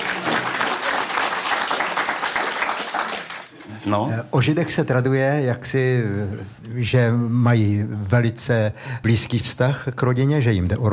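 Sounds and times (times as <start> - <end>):
audience applause: 0.0 - 3.6
speech: 3.8 - 10.9.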